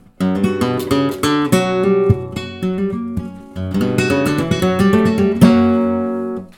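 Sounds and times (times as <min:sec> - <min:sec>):
flamenco guitar falseta: 0:00.0 - 0:06.5.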